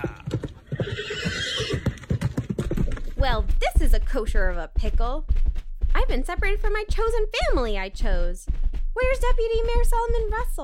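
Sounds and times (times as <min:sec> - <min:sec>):
horse whinnying: 0:00.0 - 0:03.0
hooves clip-clopping: 0:00.0 - 0:10.6
speech: 0:03.2 - 0:05.4, 0:06.0 - 0:10.6.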